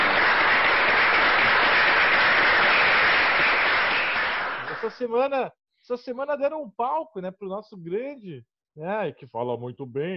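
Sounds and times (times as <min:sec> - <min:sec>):
applause: 0:00.0 - 0:05.2
speech: 0:04.9 - 0:10.1.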